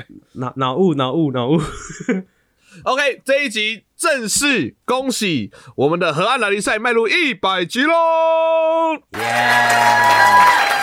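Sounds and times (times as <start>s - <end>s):
speech: 0.0s - 10.8s
hands clapping: 9.1s - 10.8s.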